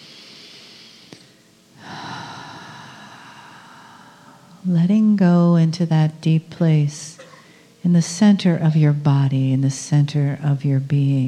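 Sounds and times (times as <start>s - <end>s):
deep in-breath during a guided meditation: 0.0s - 4.6s
faint constant drone: 0.0s - 11.2s
speech: 4.6s - 7.2s, 7.8s - 11.2s.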